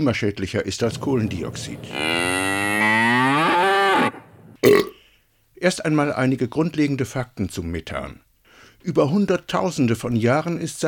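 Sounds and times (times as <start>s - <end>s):
speech: 0.0s - 2.4s, 5.6s - 10.8s
cattle mooing: 1.4s - 4.8s.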